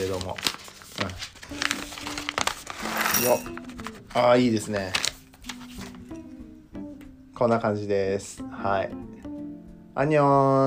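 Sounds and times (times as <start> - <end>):
plastic coffee bean bag crinkling as it is opened: 0.0 - 5.6
speech: 0.2 - 1.3, 3.2 - 3.6, 4.2 - 5.1, 7.4 - 9.0, 10.0 - 10.6.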